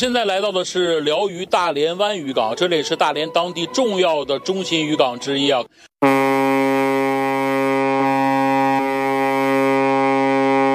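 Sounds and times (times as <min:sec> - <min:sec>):
speech: 0:00.0 - 0:06.2
harbour signal horn starting the fishing season: 0:06.0 - 0:10.7.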